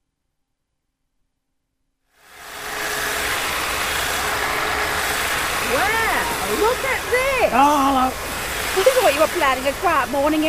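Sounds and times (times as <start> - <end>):
hedge trimmer cutting a hedge: 2.2 - 10.4
speech: 6.7 - 10.4.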